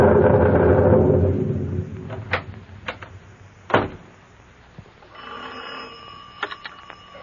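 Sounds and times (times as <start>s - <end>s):
rush of noise: 0.0s - 3.4s
sharp clicks and knocks: 2.0s - 4.1s
old telephone bell ringing: 5.1s - 7.2s.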